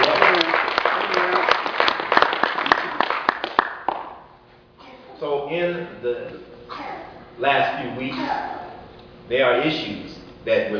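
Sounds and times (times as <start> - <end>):
audience applause: 0.0 - 4.1
speech: 7.4 - 8.5, 9.3 - 10.7.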